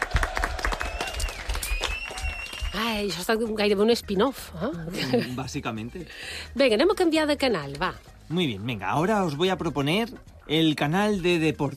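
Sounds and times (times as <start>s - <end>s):
audience applause: 0.0s - 2.8s
speech: 2.8s - 11.7s.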